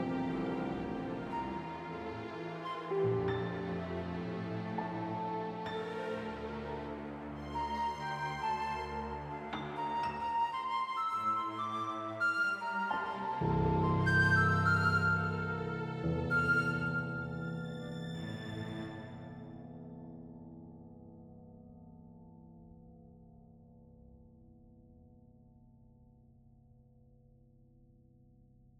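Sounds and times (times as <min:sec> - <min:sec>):
forest music: 0:00.0 - 0:19.4.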